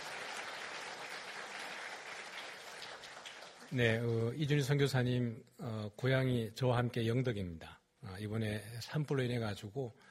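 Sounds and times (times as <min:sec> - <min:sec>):
audience applause: 0:00.0 - 0:03.9
speech: 0:03.7 - 0:10.0.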